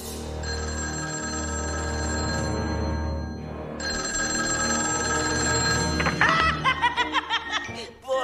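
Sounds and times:
telephone ringing: 0.3s - 6.8s
rhythmic snickering laughter from answering machine: 6.0s - 7.7s.

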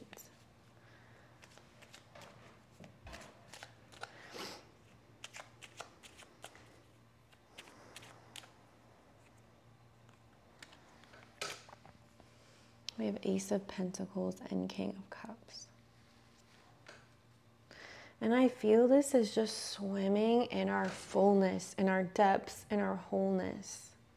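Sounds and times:
tarot cards being shuffled to draw another card: 1.4s - 4.2s, 5.2s - 8.6s
speech: 13.0s - 15.7s, 18.2s - 23.9s.

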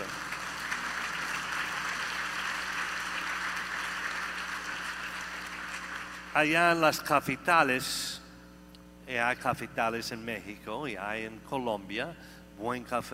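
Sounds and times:
audience applause: 0.0s - 6.8s
speech: 6.4s - 8.2s, 9.1s - 13.1s.

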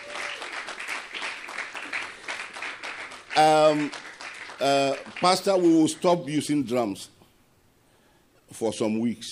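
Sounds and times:
audience clapping hands: 0.0s - 6.4s
speech: 3.4s - 7.2s, 8.5s - 9.2s.

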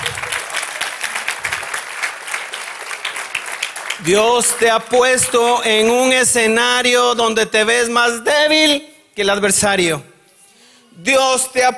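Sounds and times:
loud audience applause: 0.0s - 5.4s
speech: 4.0s - 10.1s, 11.0s - 11.7s.

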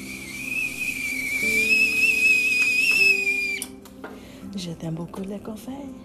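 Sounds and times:
teapot whistling as water boils: 0.0s - 3.8s
speech: 4.6s - 6.0s.

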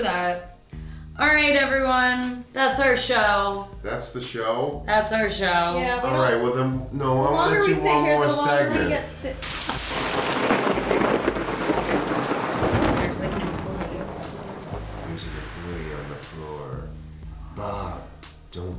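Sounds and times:
speech: 0.0s - 0.6s, 1.2s - 10.4s
garbage cans being moved around: 9.4s - 15.4s.

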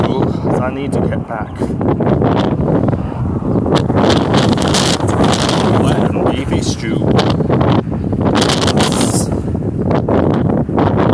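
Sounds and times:
wind buffeting a microphone outdoors: 0.0s - 11.1s
speech: 0.6s - 3.0s.

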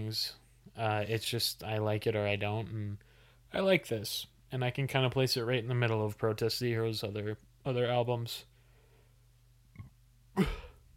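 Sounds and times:
speech: 0.1s - 8.5s, 10.4s - 10.6s
person burping: 9.8s - 10.8s.

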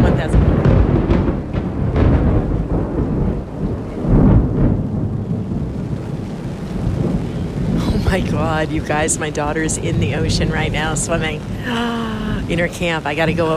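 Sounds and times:
thunder during a thunderstorm: 0.0s - 13.5s
speech: 8.2s - 13.5s.

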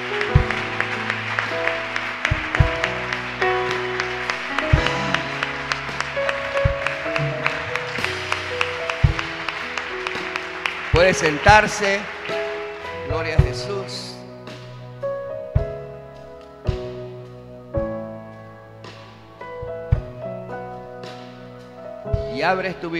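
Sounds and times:
audience applauding: 0.0s - 14.0s
instrumental music with keyboard chords and bass thumps: 0.0s - 22.9s
speech: 11.0s - 12.2s, 22.5s - 22.9s.

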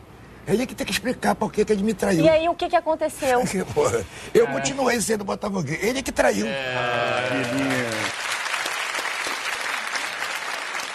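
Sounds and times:
speech: 0.5s - 8.1s
laughter: 6.6s - 8.1s
audience applause: 6.7s - 10.9s.

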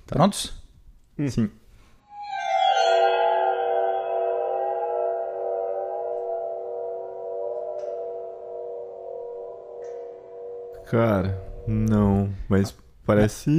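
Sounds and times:
speech: 0.1s - 0.6s, 1.2s - 1.6s, 10.9s - 13.5s
xylophone-like oriental suspense sound: 2.1s - 11.9s.

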